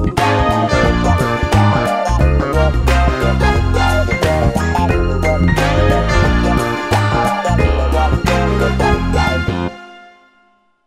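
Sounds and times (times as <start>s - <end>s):
ringtone: 0.2s - 10.5s.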